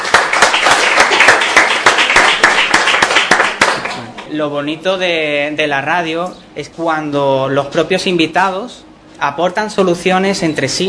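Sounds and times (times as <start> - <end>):
applause from a room full of people: 0.0 - 4.2
speech: 4.3 - 10.8.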